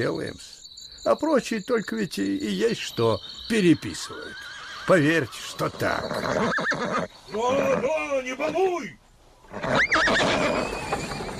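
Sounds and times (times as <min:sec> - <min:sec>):
speech: 0:00.0 - 0:10.8
gelding neighing as it is led out: 0:03.9 - 0:08.0, 0:09.5 - 0:11.3.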